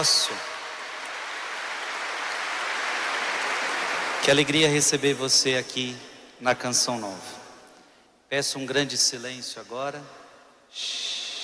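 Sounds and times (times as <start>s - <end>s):
speech: 0.0s - 0.5s, 4.2s - 7.4s, 8.3s - 11.1s
audience applause: 0.0s - 4.7s.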